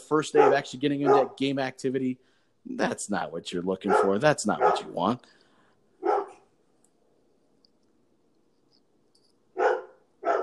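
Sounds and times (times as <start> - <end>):
speech: 0.1 - 5.4
dog barking: 0.3 - 1.4, 3.8 - 5.2, 6.0 - 6.4, 9.6 - 10.4.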